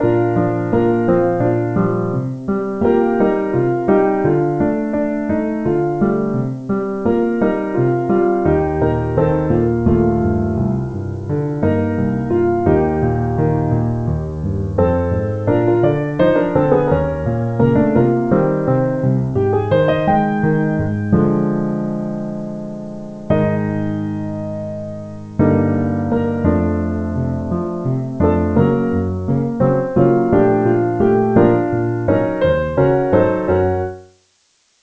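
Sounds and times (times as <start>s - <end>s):
musical accompaniment: 0.0s - 34.1s.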